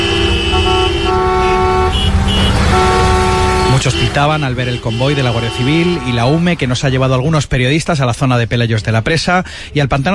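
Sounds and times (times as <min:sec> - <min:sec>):
car horns honking on highway: 0:00.0 - 0:07.2
loud rumble of road traffic on highway: 0:00.0 - 0:09.8
speech: 0:03.8 - 0:10.1.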